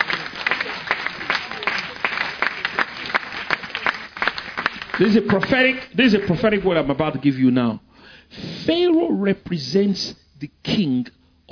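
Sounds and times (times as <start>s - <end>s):
audience applauding: 0.0s - 6.6s
speech: 5.0s - 11.5s.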